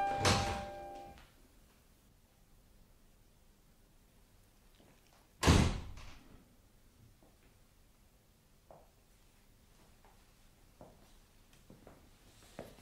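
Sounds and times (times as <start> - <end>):
door banging shut: 0.0 - 1.1, 5.4 - 6.2.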